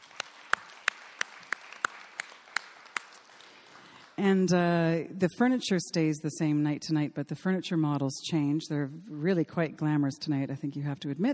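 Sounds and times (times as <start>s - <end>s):
sharp claps: 0.0s - 4.2s
speech: 4.2s - 11.3s.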